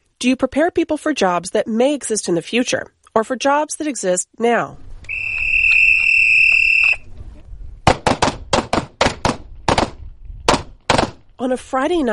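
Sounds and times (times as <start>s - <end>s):
speech: 0.2s - 4.9s, 11.4s - 12.1s
shrill electronic tone: 5.1s - 7.0s
gunfire at a nighttime shooting class: 7.9s - 11.2s.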